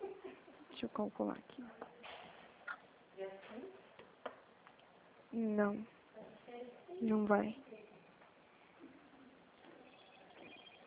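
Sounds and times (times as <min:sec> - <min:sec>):
speech: 0:00.8 - 0:01.8, 0:05.3 - 0:06.0, 0:06.6 - 0:07.7
telephone ringing: 0:09.6 - 0:10.8.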